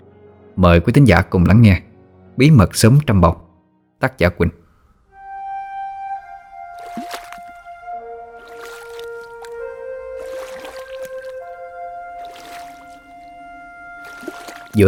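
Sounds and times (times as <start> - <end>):
speech: 0.6 - 3.4, 4.0 - 4.6
small wooden sampan boat drifting on a wide river at night: 6.6 - 14.8.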